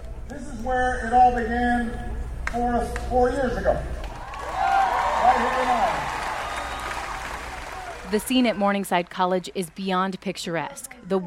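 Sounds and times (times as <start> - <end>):
speech: 0.6 - 3.9, 8.1 - 11.2
crowd cheering: 4.0 - 9.9.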